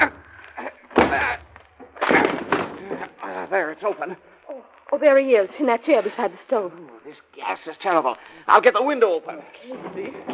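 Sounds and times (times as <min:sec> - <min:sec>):
splintering crunches: 0:00.1 - 0:03.2
door being battered open: 0:00.9 - 0:03.1
speech: 0:03.5 - 0:04.3, 0:04.9 - 0:10.3.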